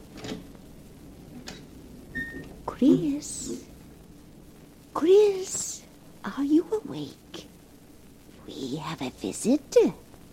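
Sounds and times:
door opening: 0.1s - 0.5s, 1.4s - 3.7s
speech: 2.8s - 3.7s, 6.3s - 7.2s, 8.6s - 10.0s.

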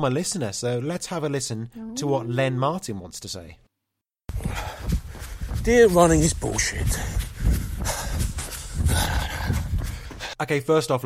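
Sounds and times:
speech: 0.0s - 3.7s, 5.6s - 7.3s, 10.4s - 11.0s
heavy breathing in a listener's audio recording: 4.3s - 5.7s, 6.6s - 10.4s.

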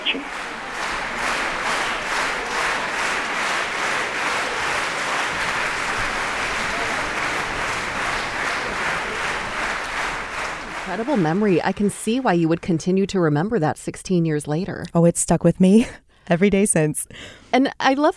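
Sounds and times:
audience rhythmic clapping: 0.0s - 13.1s
speech: 11.0s - 18.1s.

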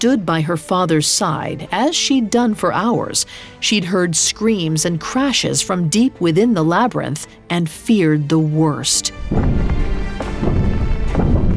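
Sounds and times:
speech: 0.0s - 10.6s
pounding against a stone door: 9.2s - 11.5s.

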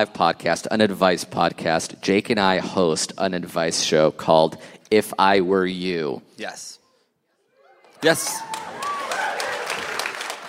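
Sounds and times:
speech: 0.0s - 6.8s, 8.0s - 8.7s
live audience clapping: 7.9s - 10.4s.

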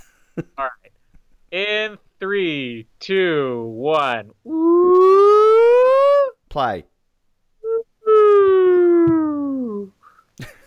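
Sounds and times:
speech: 0.4s - 5.4s, 6.5s - 6.9s
vocal exclamation: 4.4s - 6.5s, 7.6s - 10.0s
slide whistle: 4.6s - 6.3s.

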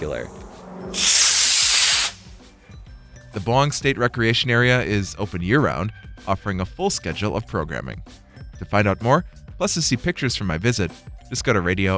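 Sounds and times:
faint low rumbles: 0.0s - 1.0s
speech: 0.0s - 1.2s, 3.4s - 11.9s
model rocket whooshing off at launch: 0.1s - 2.3s.

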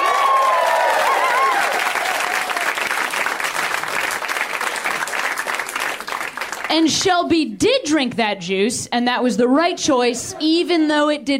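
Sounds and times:
comedy club crowd cheering: 0.0s - 6.6s
comedy club audience clapping: 0.0s - 6.9s
speech: 6.7s - 11.3s.

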